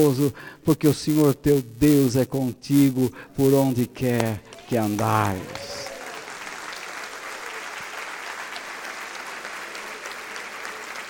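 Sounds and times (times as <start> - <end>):
speech: 0.0 - 5.9
crowd, audience applauding: 4.2 - 11.0.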